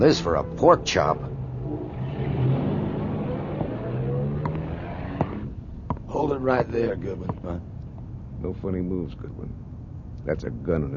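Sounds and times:
speech: 0:00.0 - 0:01.3, 0:06.4 - 0:07.7, 0:08.4 - 0:09.6, 0:10.3 - 0:10.9
car engine rumbling as the car pulls up to a house: 0:00.0 - 0:07.0.

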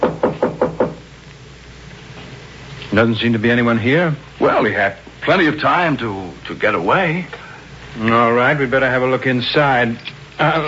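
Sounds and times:
knocking on a hotel room door: 0:00.0 - 0:01.0
speech: 0:02.9 - 0:07.4, 0:08.0 - 0:10.6.

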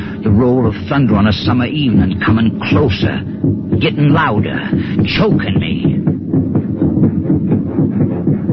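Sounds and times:
pounding heartbeat: 0:00.0 - 0:08.5
speech: 0:00.2 - 0:07.1.

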